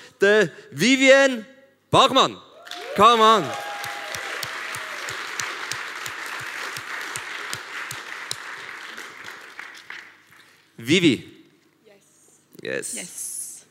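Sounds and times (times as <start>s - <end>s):
speech: 0.2s - 3.6s, 10.8s - 11.3s, 12.6s - 13.2s
audience applause: 2.7s - 10.6s.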